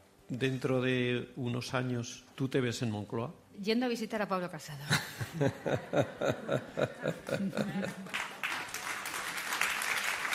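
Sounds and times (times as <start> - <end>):
speech: 0.3 - 8.2
audience laughter: 5.2 - 8.3
audience applause: 7.0 - 10.3.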